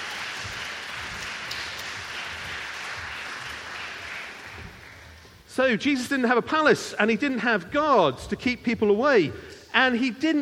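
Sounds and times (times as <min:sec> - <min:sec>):
audience applause: 0:00.0 - 0:05.4
speech: 0:05.6 - 0:10.4.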